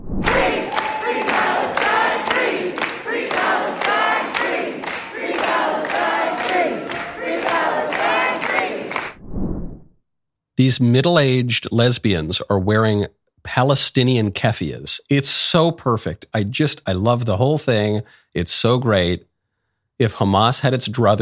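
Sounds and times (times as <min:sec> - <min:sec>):
pro-Palestine crowd cheering and chanting in an auditorium: 0:00.2 - 0:09.2
speech: 0:10.6 - 0:19.3, 0:20.0 - 0:21.2.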